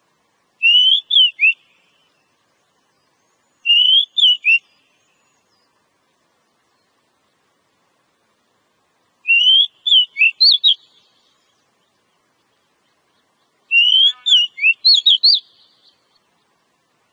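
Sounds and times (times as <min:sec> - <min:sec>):
Oriental magpie-robin song used as a lure recording: 0:00.6 - 0:05.8, 0:09.2 - 0:17.1.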